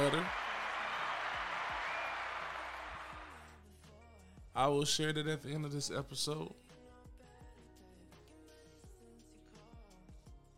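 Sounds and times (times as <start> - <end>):
clapping: 0.0 - 3.5
speech: 4.6 - 6.6.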